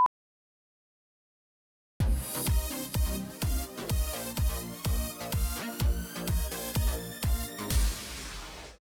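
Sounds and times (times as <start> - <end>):
checkout music: 2.0 - 8.0.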